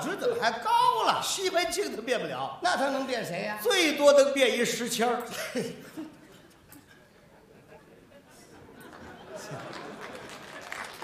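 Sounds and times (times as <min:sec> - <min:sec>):
speech: 0:00.2 - 0:06.0
laughter: 0:05.3 - 0:11.0
audience applause: 0:08.8 - 0:11.0.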